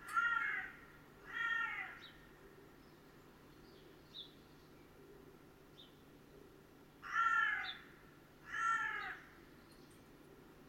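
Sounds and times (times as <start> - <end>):
Carrion crow Corvus corone raspy cawing: 0.0 - 2.1, 7.0 - 9.4.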